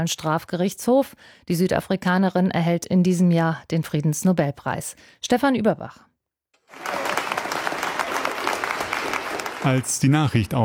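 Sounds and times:
speech: 0.0 - 6.1, 9.6 - 10.6
large crowd applause in a hall: 6.6 - 10.6.

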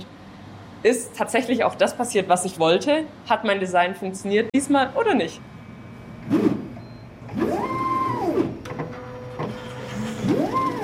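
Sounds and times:
speech: 0.8 - 5.5
white pipetting robot motor whines as its two long gripper arms move: 7.3 - 8.6, 9.5 - 10.8.

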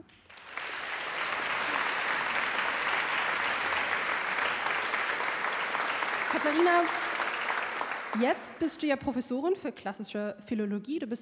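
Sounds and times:
audience applause: 0.0 - 8.6
speech: 6.4 - 7.0, 8.2 - 11.2.

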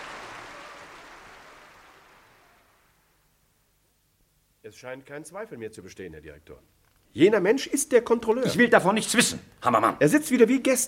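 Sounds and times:
audience applause: 0.0 - 3.0
speech: 4.6 - 10.8.

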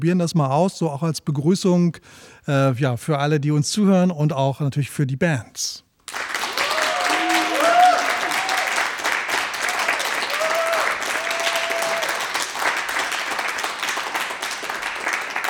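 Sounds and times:
speech: 0.0 - 5.8
studio audience applause: 6.1 - 15.4.

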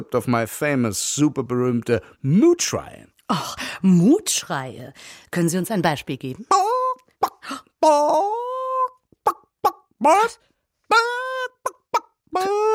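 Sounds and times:
speech: 0.0 - 6.8, 7.5 - 8.4, 10.0 - 11.1, 12.3 - 12.7
person imitating chicken clucking: 6.5 - 12.7.

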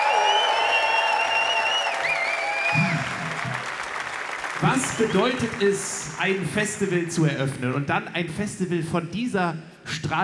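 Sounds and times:
festival audience at Rudolstadt Open Air clapping: 0.0 - 7.6
speech: 4.6 - 10.2.

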